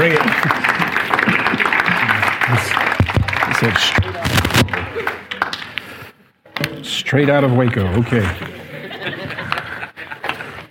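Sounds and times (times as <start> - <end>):
laughter: 0.0 - 4.0, 4.6 - 5.4, 8.4 - 10.6
church audience applauding a pastor: 0.0 - 5.8
speech: 0.1 - 0.7, 3.6 - 4.1, 7.1 - 8.6.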